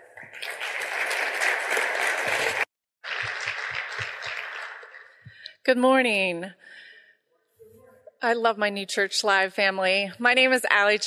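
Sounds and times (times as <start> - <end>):
audience applause: 0.0 - 5.4
speech: 5.7 - 6.8, 8.2 - 11.0.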